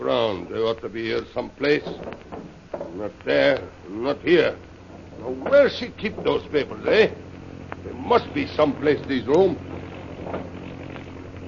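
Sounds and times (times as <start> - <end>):
speech: 0.0 - 2.3, 3.0 - 7.2, 7.8 - 9.7
airplane approaching: 4.1 - 11.4.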